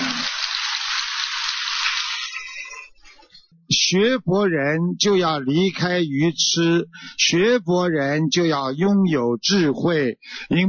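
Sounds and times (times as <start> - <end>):
audience clapping: 0.0 - 2.6
speech: 3.7 - 10.6.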